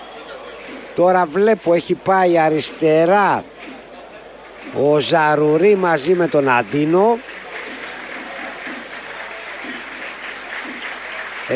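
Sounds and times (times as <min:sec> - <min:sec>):
stadium crowd applause: 0:00.0 - 0:11.5
speech: 0:01.0 - 0:03.5, 0:04.6 - 0:07.3.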